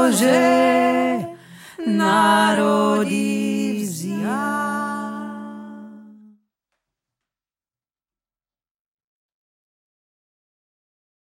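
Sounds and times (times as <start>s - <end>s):
deep voice singing a Ukrainian Christmas song: 0.0s - 6.4s.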